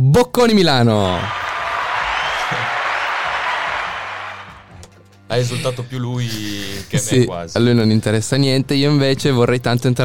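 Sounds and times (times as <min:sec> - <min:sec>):
speech: 0:00.2 - 0:01.4, 0:05.3 - 0:10.0
applause: 0:01.2 - 0:04.8.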